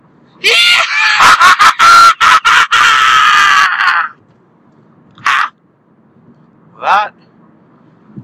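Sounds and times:
speech: 0.4s - 0.6s
person's loud primal scream: 0.4s - 4.2s, 5.2s - 5.5s
laughter: 0.8s - 4.1s.

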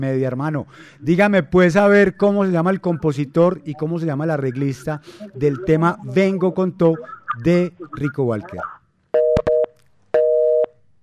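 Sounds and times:
speech: 0.0s - 8.8s
telephone busy signal after a dropped call: 9.2s - 10.7s.

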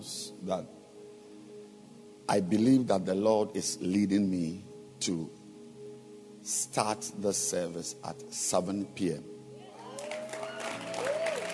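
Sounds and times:
speech: 0.0s - 0.8s, 2.3s - 5.4s, 6.4s - 9.4s
audience clapping: 9.8s - 11.5s.

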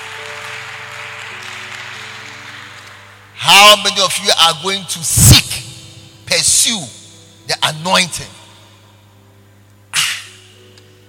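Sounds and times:
audience clapping: 0.0s - 3.9s
speech: 3.6s - 5.4s, 6.5s - 8.4s.

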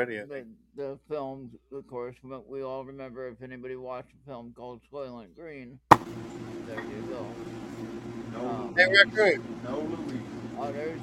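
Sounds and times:
speech: 0.0s - 11.0s
loud blower running: 5.9s - 11.0s.

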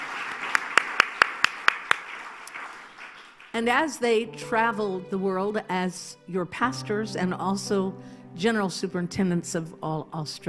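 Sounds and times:
audience clapping: 0.0s - 3.9s
speech: 3.6s - 10.4s.

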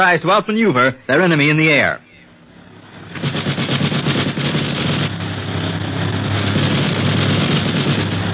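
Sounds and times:
speech: 0.0s - 2.1s
machine gun fire from a plane: 3.1s - 5.2s, 6.1s - 8.2s.

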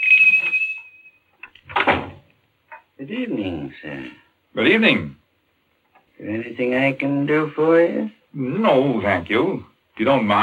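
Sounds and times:
door squeaking as it is pushed open: 0.0s - 2.2s
speech: 3.0s - 5.2s, 6.2s - 10.4s.

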